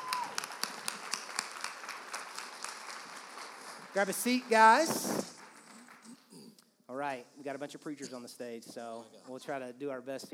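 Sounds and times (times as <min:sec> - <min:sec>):
audience clapping at a church Sunday gathering: 0:00.0 - 0:06.5
speech: 0:03.9 - 0:05.3, 0:07.0 - 0:10.3.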